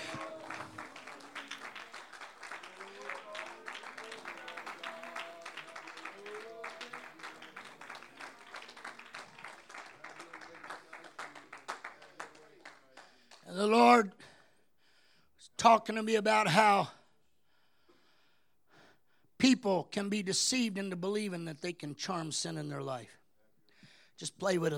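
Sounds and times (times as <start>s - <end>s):
raised voices calling out: 0.0s - 8.6s
audience clapping: 0.0s - 13.5s
speech: 15.6s - 17.0s, 19.6s - 23.2s, 24.2s - 24.7s.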